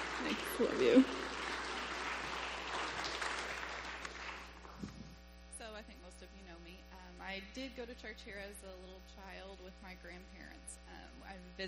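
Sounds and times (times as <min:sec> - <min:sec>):
audience applause welcoming a guest in a church: 0:00.0 - 0:05.0
speech: 0:00.2 - 0:01.2, 0:07.6 - 0:11.6.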